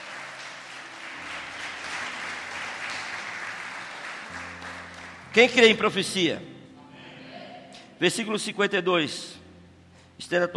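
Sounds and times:
audience applauding: 0.0s - 5.8s
speech: 5.4s - 6.5s, 8.0s - 9.4s, 10.2s - 10.5s.

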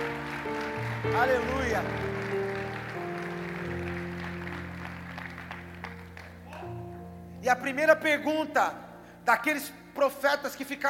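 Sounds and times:
applause: 0.0s - 6.8s
speech: 1.0s - 2.4s, 7.5s - 10.8s.

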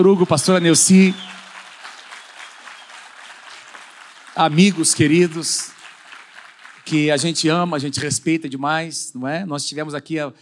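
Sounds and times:
speech: 0.0s - 1.4s, 4.4s - 5.8s, 6.9s - 10.4s
audience applause: 0.0s - 7.7s.

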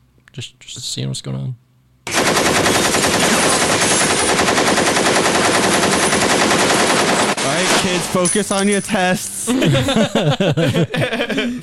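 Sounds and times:
speech: 0.4s - 1.6s, 7.8s - 11.6s
machine-gun fire sound effect: 2.1s - 8.2s
laughter: 9.5s - 11.6s.

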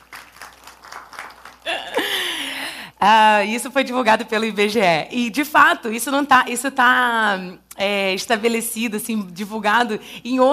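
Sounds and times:
applause: 0.0s - 2.3s
speech: 3.0s - 10.5s.

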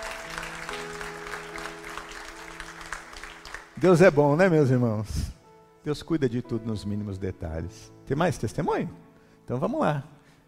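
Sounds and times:
audience applause: 0.0s - 3.9s
speech: 3.8s - 10.2s.

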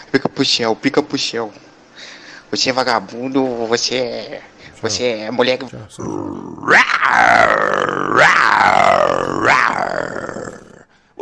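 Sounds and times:
speech: 0.1s - 10.6s
lion roaring: 5.6s - 10.9s.

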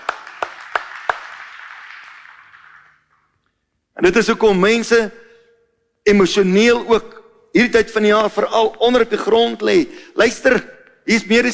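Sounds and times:
audience hand clapping: 0.0s - 3.4s
speech: 4.0s - 5.2s, 6.1s - 11.5s.

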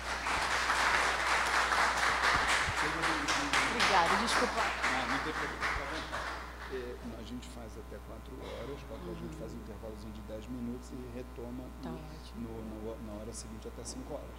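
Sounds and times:
audience applause: 0.0s - 7.0s
faint voice speaking: 8.4s - 9.9s, 11.8s - 12.5s.

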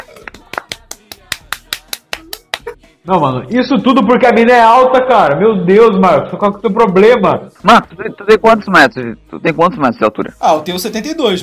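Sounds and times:
applause: 0.1s - 2.7s
speech: 3.1s - 11.4s.

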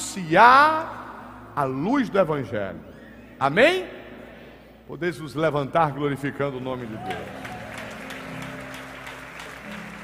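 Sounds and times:
speech: 0.2s - 1.0s, 1.6s - 4.0s, 4.9s - 7.4s
audience applause: 6.8s - 10.0s.

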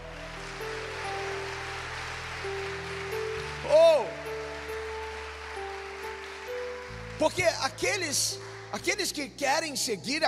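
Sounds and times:
audience applauding: 0.0s - 9.2s
speech: 7.2s - 10.2s.

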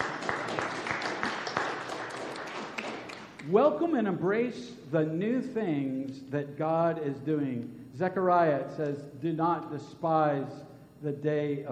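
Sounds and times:
church congregation applause: 0.0s - 3.3s
speech: 3.5s - 11.7s.

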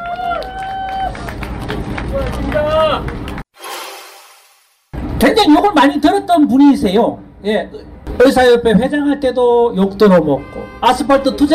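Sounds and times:
crowd applauding at rally: 0.0s - 3.4s
speech: 5.2s - 11.5s.

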